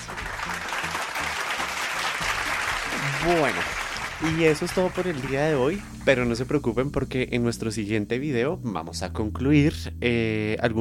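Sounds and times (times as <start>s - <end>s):
crowd applause: 0.0s - 6.3s
speech: 3.2s - 10.8s.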